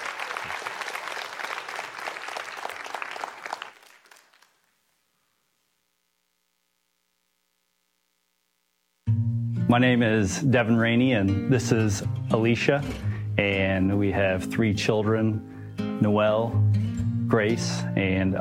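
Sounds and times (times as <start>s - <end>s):
audience applauding: 0.0s - 4.8s
speech: 9.7s - 16.6s, 17.3s - 18.3s.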